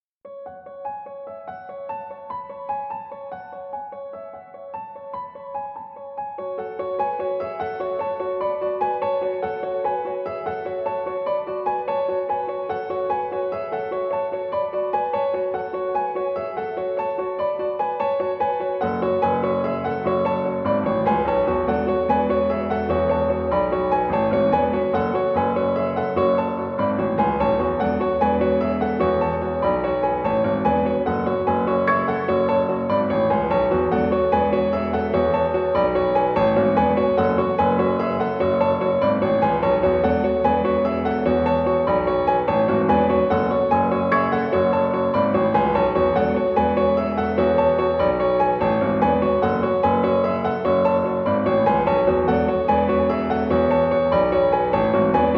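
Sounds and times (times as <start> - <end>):
piano cover: 0.3 - 55.3.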